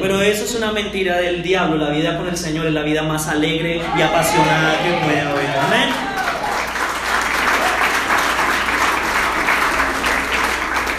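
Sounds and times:
speech: 0.0 - 6.1
audience applause: 4.1 - 10.9.

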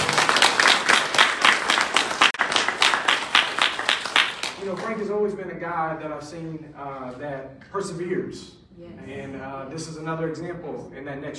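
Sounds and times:
audience applause: 0.0 - 4.9
speech: 4.9 - 11.3.

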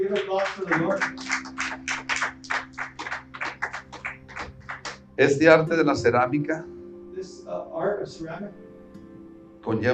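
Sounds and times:
audience applause: 0.0 - 5.0
speech: 0.1 - 1.4, 5.2 - 6.8, 7.5 - 8.6, 9.6 - 9.9.

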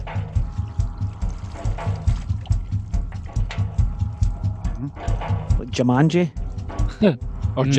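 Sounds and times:
watery sloshing and clattering from Whirlpool washing machine sounds: 0.0 - 4.5
steady repeating low thumping beat: 0.0 - 7.7
speech: 5.7 - 6.4, 7.0 - 7.7.

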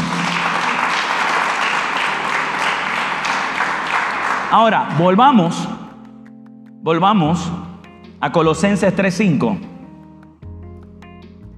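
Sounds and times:
audience applause: 0.0 - 5.3
speech: 4.5 - 5.8, 6.8 - 7.6, 8.2 - 9.7.

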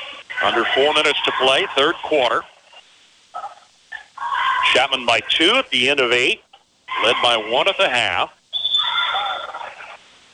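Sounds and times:
speech: 0.4 - 2.5, 4.7 - 6.4, 7.0 - 8.4
referee's whistle for an offensive foul: 8.5 - 9.2.

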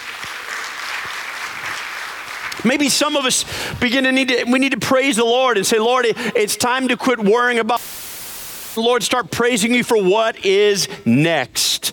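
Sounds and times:
audience applause: 0.0 - 2.7
speech: 2.6 - 8.0, 8.8 - 11.9.

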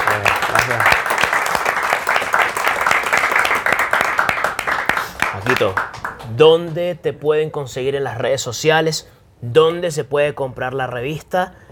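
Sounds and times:
audience applause: 0.0 - 6.3
speech: 5.6 - 11.6.

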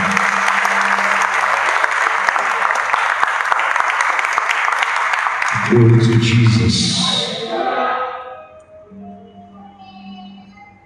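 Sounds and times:
audience clapping: 0.0 - 7.3
speech: 5.7 - 7.2.

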